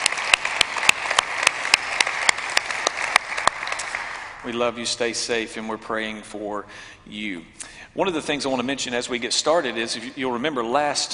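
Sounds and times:
sparse hand claps from a church congregation: 0:00.0 - 0:04.4
speech: 0:04.4 - 0:11.1.

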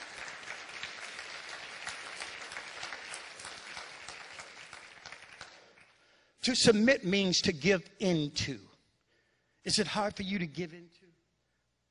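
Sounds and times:
crowd applauding: 0:00.0 - 0:06.2
speech: 0:06.4 - 0:08.7, 0:09.6 - 0:11.0.

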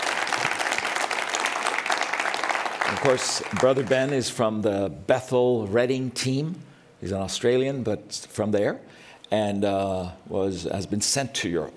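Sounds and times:
audience applause at an Awakening Europe gathering: 0:00.0 - 0:04.3
speech: 0:02.9 - 0:11.7.

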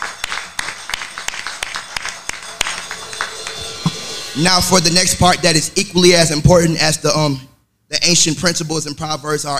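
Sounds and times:
few people clapping: 0:00.0 - 0:04.3
speech: 0:04.4 - 0:09.5.

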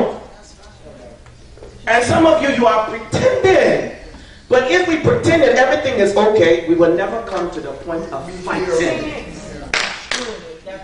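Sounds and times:
speech: 0:01.9 - 0:03.9, 0:04.5 - 0:09.3
single clap from audience member: 0:09.7 - 0:10.4.

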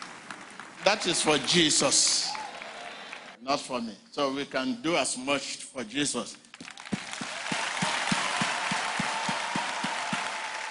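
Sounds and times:
audience clapping: 0:00.0 - 0:03.4, 0:06.4 - 0:10.6
speech: 0:00.8 - 0:02.4, 0:03.4 - 0:06.4.

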